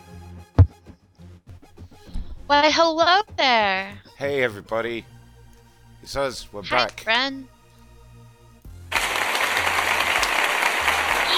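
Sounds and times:
speech: 0:02.5 - 0:05.1, 0:06.0 - 0:07.5
audience applause at a show: 0:08.9 - 0:11.3.

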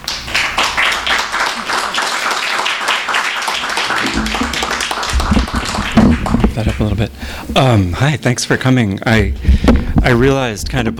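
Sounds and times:
audience applauding to welcome an author before a reading: 0:00.0 - 0:07.1
speech: 0:06.6 - 0:10.9.

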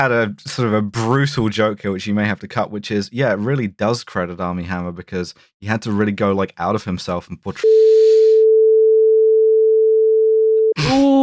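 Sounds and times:
speech: 0:00.0 - 0:08.0
censor bleep tone: 0:07.6 - 0:10.8.

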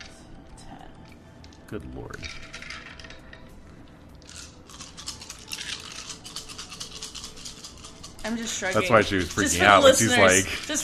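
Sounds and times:
speech: 0:01.7 - 0:02.5, 0:08.2 - 0:10.8
ten plastic dice rattling and clattering: 0:02.2 - 0:03.4, 0:04.2 - 0:10.5.

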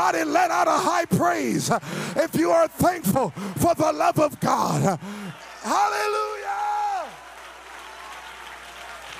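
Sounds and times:
speech: 0:00.1 - 0:06.4
audience clapping hands: 0:02.6 - 0:09.1.

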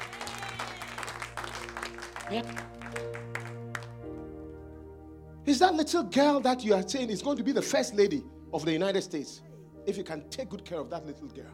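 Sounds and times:
audience clapping: 0:00.0 - 0:04.5
speech: 0:02.3 - 0:03.1, 0:05.5 - 0:11.5.

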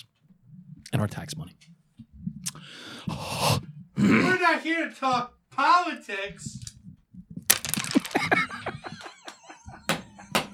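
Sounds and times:
speech: 0:00.9 - 0:01.7, 0:04.0 - 0:06.6
dice falling off a table: 0:07.5 - 0:09.2
laughter: 0:07.8 - 0:10.5.

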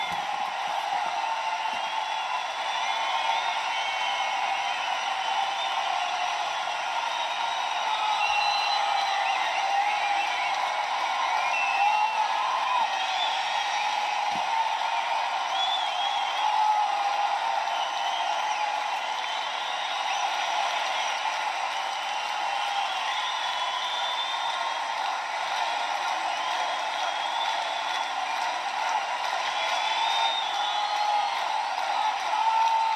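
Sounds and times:
basketball game crowd noise: 0:00.0 - 0:32.9.

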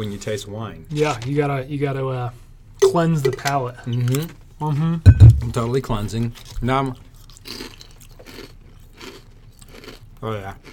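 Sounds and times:
speech: 0:00.0 - 0:07.6, 0:10.2 - 0:10.7
kettle chips being chewed: 0:06.4 - 0:10.0.

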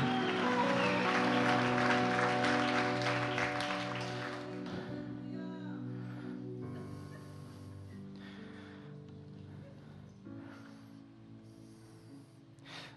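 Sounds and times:
audience clapping and cheering: 0:00.0 - 0:05.0
held keyboard or organ chords: 0:00.0 - 0:05.8.

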